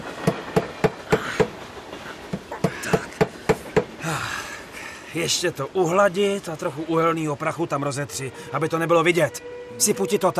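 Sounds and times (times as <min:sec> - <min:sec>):
train rolling past: 0:00.0 - 0:05.5
speech: 0:05.2 - 0:10.3.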